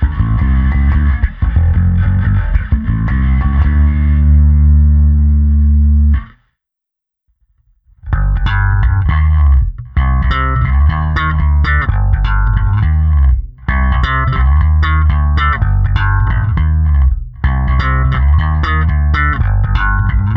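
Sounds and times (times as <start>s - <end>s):
Sadowsky NYC Ultra Vintage J Bass Guitar played slap with distortion through amp simulation: 0.0s - 6.4s, 8.0s - 20.3s.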